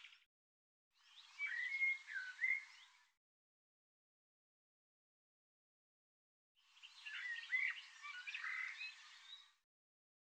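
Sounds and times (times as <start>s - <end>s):
bird song: 0.0s - 0.3s, 1.0s - 3.2s, 6.6s - 9.6s.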